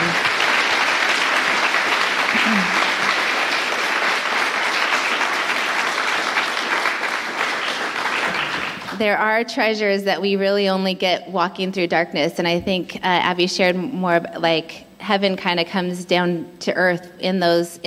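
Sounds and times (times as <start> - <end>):
audience applause: 0.0 - 9.0
speech: 9.0 - 17.8.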